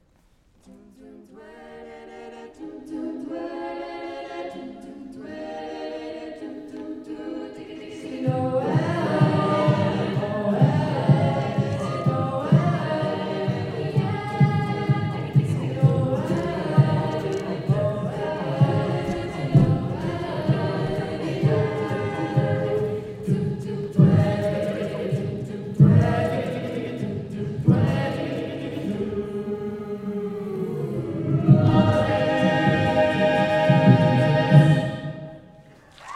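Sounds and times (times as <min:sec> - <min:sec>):
choir singing a jingle: 0:00.6 - 0:35.6.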